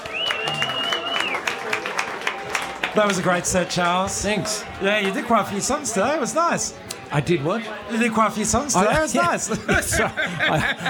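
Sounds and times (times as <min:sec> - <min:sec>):
sustained high whistle: 0:00.0 - 0:01.4
audience applause after a live music set: 0:00.0 - 0:05.3
speech: 0:03.0 - 0:10.8
laughter: 0:08.8 - 0:10.8.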